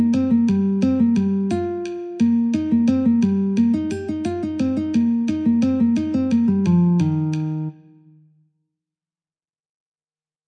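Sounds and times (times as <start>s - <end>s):
guitar playing in E flat: 0.0s - 8.3s
metronome clicking: 3.6s - 7.7s.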